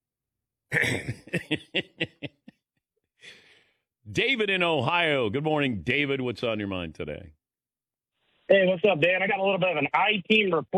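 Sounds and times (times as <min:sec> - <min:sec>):
harsh raspy throat clearing: 0:00.7 - 0:01.5
laughter: 0:00.8 - 0:02.6
speech: 0:04.2 - 0:07.4, 0:08.5 - 0:10.7.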